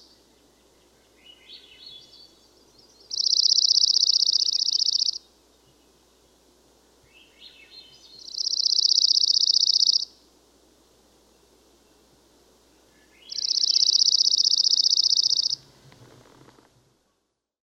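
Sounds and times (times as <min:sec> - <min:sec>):
Dark-eyed Junco Junco hyemalis calling: 0:00.7 - 0:05.8, 0:07.1 - 0:10.2, 0:12.8 - 0:15.7.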